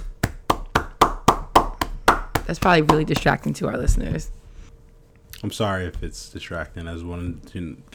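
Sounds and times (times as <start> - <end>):
loud hand claps: 0.0 - 3.3
speech: 2.5 - 4.4, 5.4 - 7.9.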